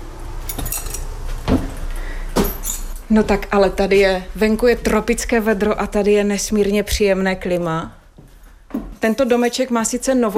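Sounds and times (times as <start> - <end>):
keys jingling: 0.5 - 1.1, 2.3 - 3.1
cottage door knocking and clunking as pushed open: 1.5 - 1.8
speech: 3.1 - 8.0, 9.0 - 10.3.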